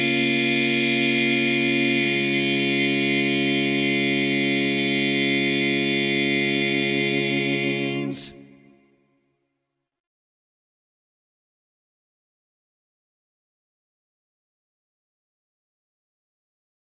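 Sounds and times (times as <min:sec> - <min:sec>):
tenor singing: 0:00.0 - 0:08.9.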